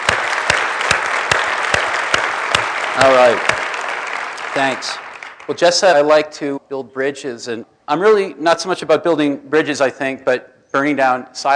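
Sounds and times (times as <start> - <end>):
conference audience clapping: 0.0 - 6.1
speech: 3.0 - 3.7, 4.6 - 11.5.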